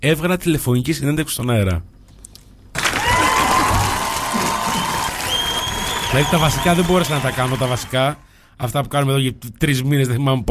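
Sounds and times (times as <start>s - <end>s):
speech: 0.0s - 2.0s, 6.1s - 10.4s
audience applause: 2.8s - 8.2s.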